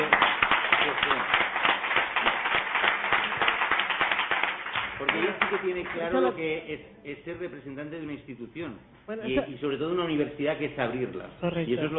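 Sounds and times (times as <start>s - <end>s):
audience applause: 0.0s - 6.1s
speech: 5.5s - 11.9s.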